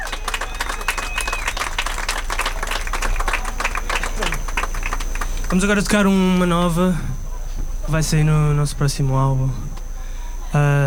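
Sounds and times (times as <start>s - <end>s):
scattered voices and cheers: 0.0s - 6.4s
audience applause: 0.0s - 6.7s
speech: 5.5s - 7.1s, 7.9s - 9.7s, 10.5s - 10.8s.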